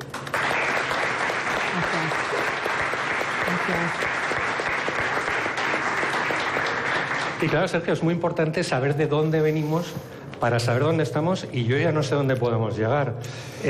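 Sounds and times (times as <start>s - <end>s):
audience applause: 0.0s - 8.0s
speech: 7.4s - 13.6s.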